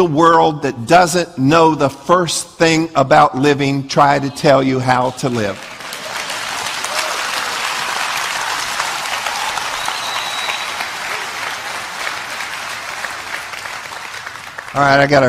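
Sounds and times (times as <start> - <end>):
speech: 0.0 - 5.8, 14.8 - 15.2
audience applause: 5.2 - 15.2.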